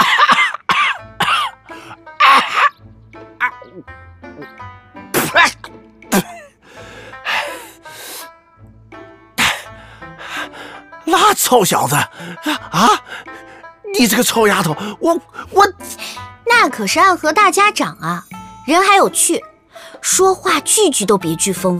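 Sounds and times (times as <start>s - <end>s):
person choking cough after swallowing betel nut: 0.0s - 1.6s, 2.2s - 2.8s, 3.4s - 4.5s, 5.1s - 6.6s
speech: 3.8s - 4.0s, 11.4s - 13.3s, 13.9s - 15.7s, 16.6s - 21.7s.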